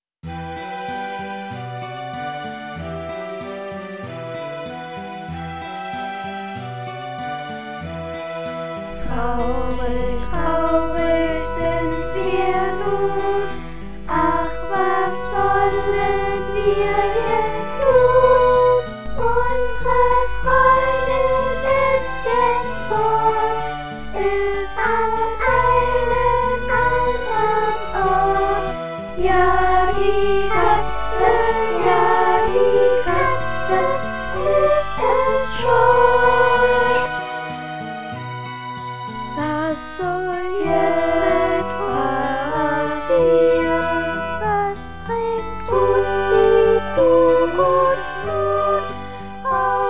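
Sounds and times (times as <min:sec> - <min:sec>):
sad choir singing: 0:00.3 - 0:49.8.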